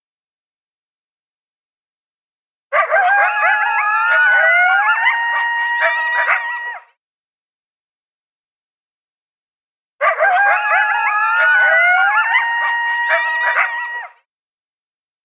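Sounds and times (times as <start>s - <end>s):
coyotes yipping and howling: 2.7s - 6.9s, 10.0s - 14.2s.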